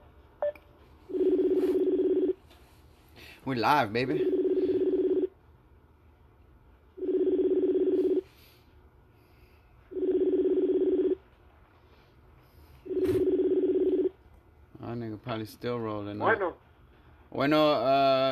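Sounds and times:
telephone line tone: 0.0 - 2.4, 4.2 - 5.3, 7.0 - 8.3, 9.9 - 11.2, 12.9 - 14.2
speech: 3.4 - 4.4, 15.4 - 16.7, 17.4 - 18.2.

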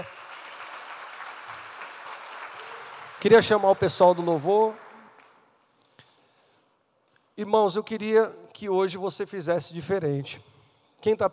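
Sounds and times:
crowd applauding: 0.0 - 5.6
speech: 3.2 - 4.8, 7.4 - 11.3.

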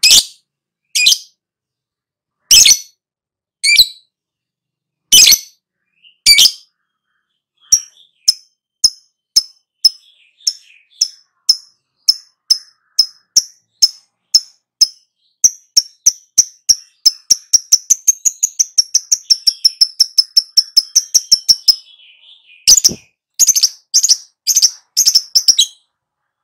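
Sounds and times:
lovebird chirping and squawking: 0.0 - 0.4, 2.5 - 2.9, 5.1 - 15.0, 16.7 - 26.4.

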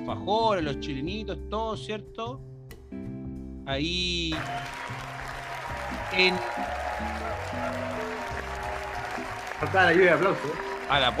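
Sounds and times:
speech: 0.1 - 3.1, 3.7 - 5.2, 6.1 - 8.2, 9.6 - 11.1
applause: 4.3 - 11.1.

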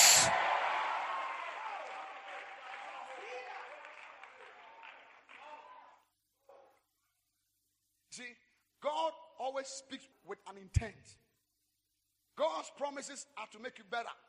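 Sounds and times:
audience shouting: 0.0 - 2.2
audience clapping: 0.0 - 6.0
speech: 0.2 - 0.5, 9.6 - 11.3, 12.4 - 14.2.

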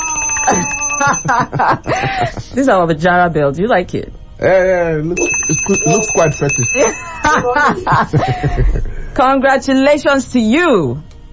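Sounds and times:
studio bell ringing: 0.0 - 1.9, 5.2 - 7.9
laughter: 0.4 - 2.6, 5.7 - 9.0
speech: 1.0 - 11.1.

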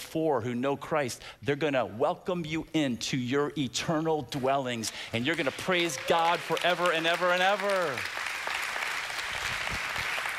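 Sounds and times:
speech: 0.1 - 8.2
audience clapping: 5.1 - 10.3.

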